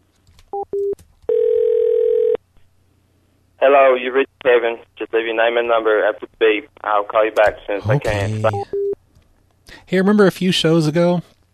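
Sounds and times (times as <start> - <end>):
telephone dial tone after a hang-up: 0.6 - 2.4
speech: 3.8 - 8.8, 9.9 - 11.3.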